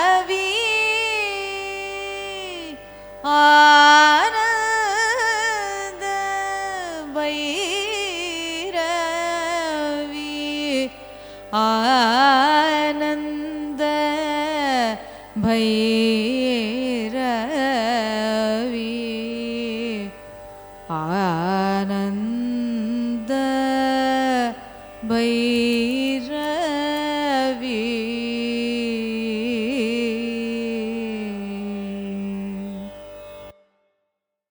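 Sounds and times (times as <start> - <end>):
Carnatic music raga: 0.0 - 34.4.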